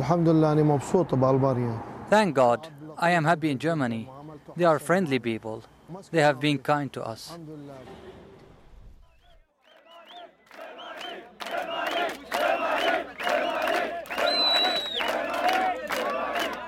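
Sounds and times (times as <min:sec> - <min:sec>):
speech: 0:00.0 - 0:08.2
crowd of migrants chanting at border fence: 0:09.6 - 0:16.6.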